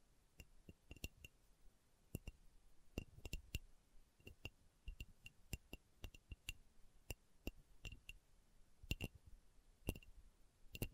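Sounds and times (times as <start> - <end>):
slow tapping: 2.1 - 8.2, 8.8 - 9.2, 9.8 - 10.9.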